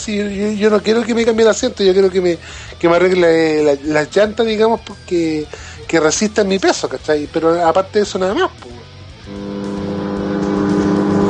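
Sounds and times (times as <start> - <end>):
speech: 0.0 - 8.8
microwave oven heating food: 9.3 - 11.2.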